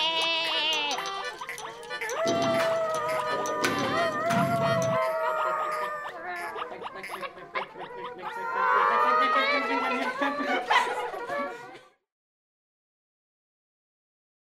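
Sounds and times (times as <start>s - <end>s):
music: 0.4s - 5.1s
laughter: 0.9s - 12.0s.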